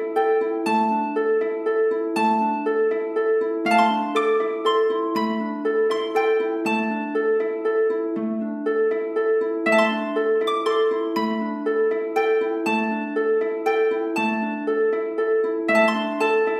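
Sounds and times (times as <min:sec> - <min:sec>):
travel harp: 0:00.0 - 0:16.5.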